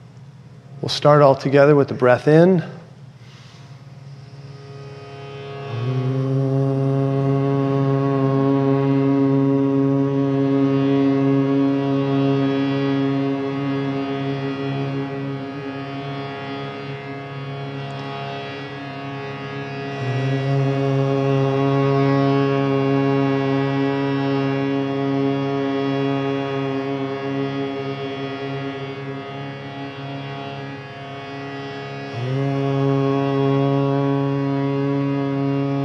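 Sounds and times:
speech: 0.8 - 2.8
group humming during meditation: 5.6 - 35.8.

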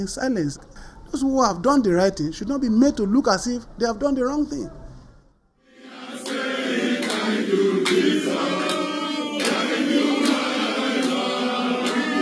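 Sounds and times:
speech: 0.0 - 4.8
crowd in Nigeria welcoming a former state governor: 5.6 - 12.1.

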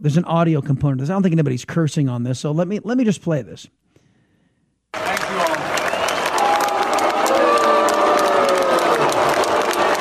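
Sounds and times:
speech: 0.0 - 3.8
commencement crowd booing: 5.0 - 9.9.

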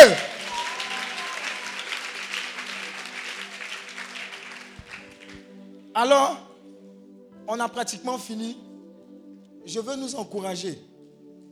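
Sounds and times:
congregation at a worship retreat shouting: 0.0 - 2.0
congregation at a worship retreat clapping: 0.0 - 5.4
speech: 6.0 - 6.5, 7.5 - 8.7, 9.6 - 10.9.

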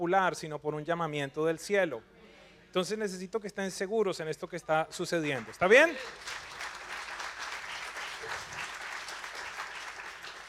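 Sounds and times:
speech: 0.0 - 6.5
golf clap, quiet polite applause from a small group: 5.2 - 10.4.

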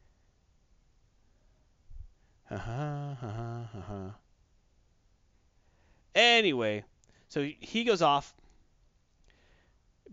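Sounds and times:
nose blowing: 2.5 - 4.2
speech: 2.5 - 4.2, 6.2 - 8.4.

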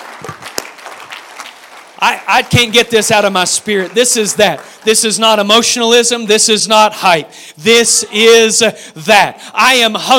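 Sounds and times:
audience clapping hands: 0.0 - 6.1
speech: 2.0 - 10.1.

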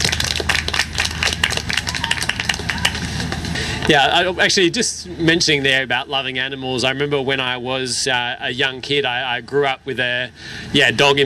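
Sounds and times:
audience applause: 0.0 - 3.6
speech: 3.9 - 11.2.

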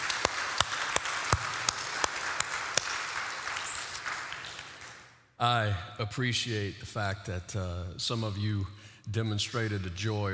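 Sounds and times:
audience clapping: 0.0 - 5.2
speech: 5.4 - 10.3.

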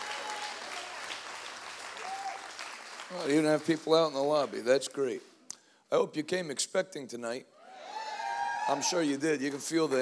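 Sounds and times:
large group hand clapping: 0.0 - 4.5, 9.2 - 10.0
speech: 3.1 - 5.3, 5.9 - 7.6, 8.7 - 10.0.

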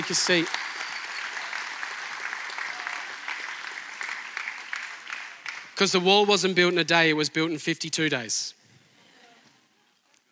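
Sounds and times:
speech: 0.0 - 0.7, 5.8 - 8.6
audience applause: 0.0 - 5.8.

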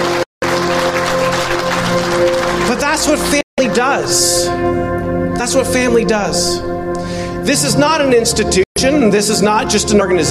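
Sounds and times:
audience applause: 0.0 - 3.4
speech: 3.0 - 10.3.

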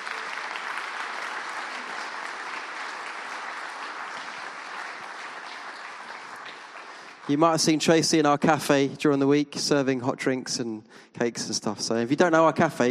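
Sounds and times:
crowd applause: 0.0 - 8.2
speech: 7.3 - 12.8.

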